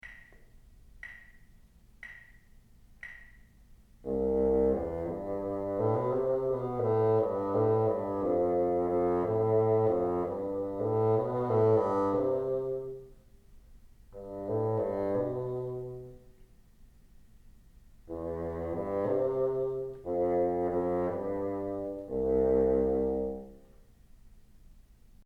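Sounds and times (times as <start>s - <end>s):
bassoon: 4.0s - 13.2s, 14.2s - 16.4s, 18.1s - 23.8s.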